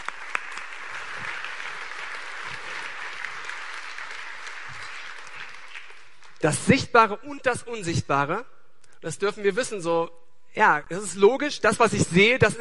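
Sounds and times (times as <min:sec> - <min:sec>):
audience applause: 0:00.0 - 0:06.4
speech: 0:06.4 - 0:12.5.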